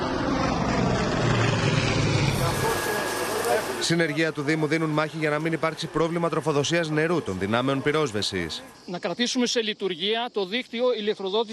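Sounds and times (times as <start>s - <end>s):
propeller firefighting plane droning: 0.0s - 9.0s
speech: 3.8s - 11.5s.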